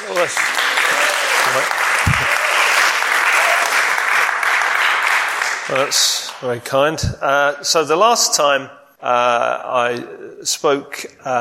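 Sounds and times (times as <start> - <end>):
audience applause welcoming a speaker at a Bible talk: 0.0 - 6.7
speech: 0.2 - 0.7, 1.5 - 2.3, 5.7 - 11.3.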